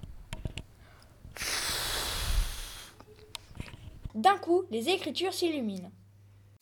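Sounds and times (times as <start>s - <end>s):
blowing dust off an old dusty book: 1.3s - 3.0s
speech: 4.2s - 6.0s.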